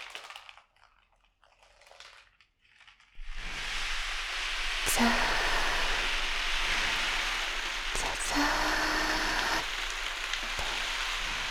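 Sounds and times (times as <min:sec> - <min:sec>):
dried azuki beans rolling like ocean waves: 0:03.2 - 0:11.5.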